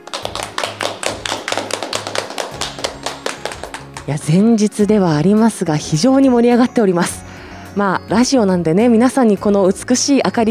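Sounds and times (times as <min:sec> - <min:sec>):
small crowd applauding: 0:00.0 - 0:04.2
speech: 0:04.0 - 0:10.4.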